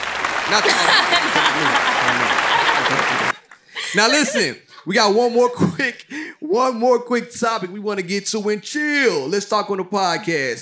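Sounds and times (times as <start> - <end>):
crowd applause sound effect: 0.0 - 4.4
laughter: 0.0 - 5.5
speech: 0.5 - 10.6.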